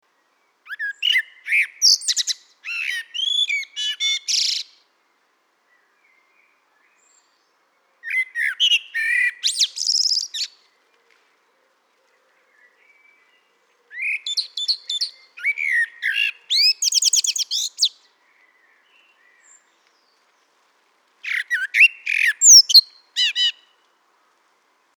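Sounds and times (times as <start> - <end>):
Eurasian blackbird song: 0.1 - 20.6, 21.2 - 24.0.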